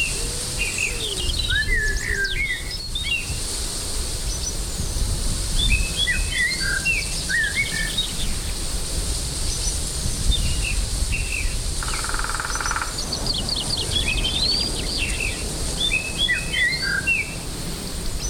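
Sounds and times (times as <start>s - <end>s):
breeze on a fall day: 0.0s - 18.2s.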